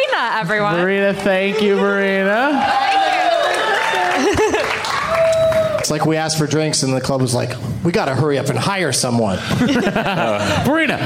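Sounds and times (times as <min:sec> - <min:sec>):
speech: 0:00.2 - 0:02.8, 0:05.9 - 0:11.0
audience applause: 0:01.5 - 0:06.2
loud whoops and cheering voices: 0:02.3 - 0:05.9
laughter: 0:03.5 - 0:05.1, 0:09.4 - 0:11.0.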